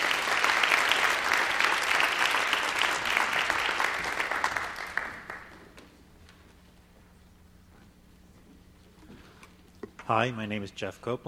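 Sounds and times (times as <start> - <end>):
audience applause for award winners: 0.0 - 5.9
speech: 10.1 - 11.2.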